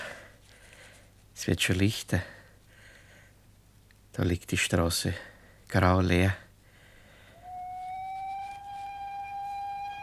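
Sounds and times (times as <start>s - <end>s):
speech: 1.4s - 2.4s, 4.2s - 6.4s
train whistle: 7.3s - 10.0s.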